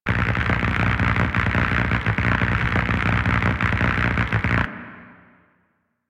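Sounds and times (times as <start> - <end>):
Infested Arc Rifle active loop: 0.0 - 4.7.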